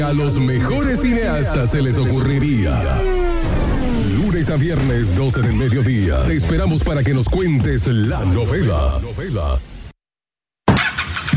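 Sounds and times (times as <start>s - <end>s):
speech: 0.0s - 3.2s, 4.4s - 9.7s
motorcycle engine starting and revving: 0.0s - 6.2s, 10.7s - 11.3s.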